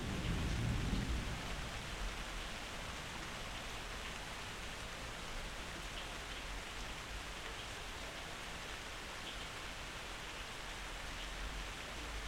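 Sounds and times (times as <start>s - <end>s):
thunder: 0.0s - 1.7s
rain: 0.0s - 12.2s.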